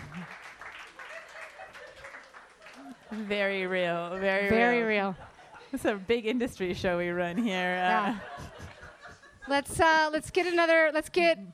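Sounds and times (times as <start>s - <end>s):
audience medium clap: 0.0s - 4.0s
audience laughter: 0.9s - 2.9s, 8.0s - 9.5s
speech: 3.1s - 8.5s, 9.5s - 11.5s.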